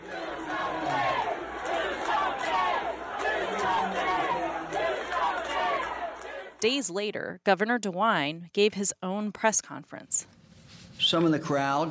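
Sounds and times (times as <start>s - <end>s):
crowd chanting at a vigil: 0.0s - 6.6s
speech: 6.6s - 10.4s, 11.0s - 11.8s.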